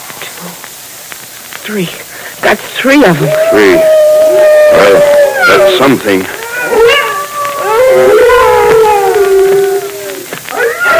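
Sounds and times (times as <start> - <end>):
speech: 1.6 - 6.9
wolves howling: 3.0 - 10.9.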